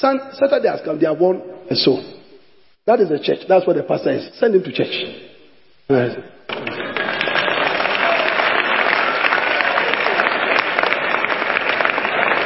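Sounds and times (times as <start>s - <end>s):
speech: 0.0s - 2.2s, 2.9s - 5.2s, 5.9s - 6.8s
audience clapping: 6.5s - 12.4s.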